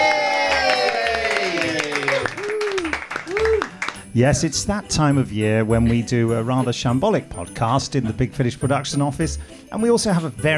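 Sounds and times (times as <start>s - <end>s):
small group applauding in office: 0.0s - 4.1s
speech: 4.2s - 10.5s.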